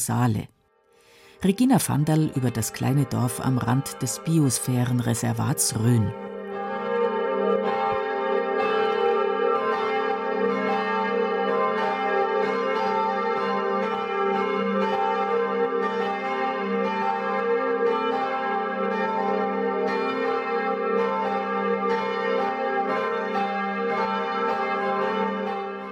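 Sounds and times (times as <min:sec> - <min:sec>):
speech: 0:00.0 - 0:00.6, 0:01.4 - 0:06.2
five church bells ringing midday peal: 0:01.2 - 0:25.9.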